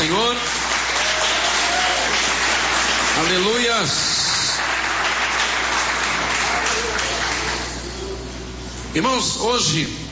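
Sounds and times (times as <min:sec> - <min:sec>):
audience clapping: 0:00.0 - 0:07.8
speech: 0:03.2 - 0:04.2, 0:09.0 - 0:10.0.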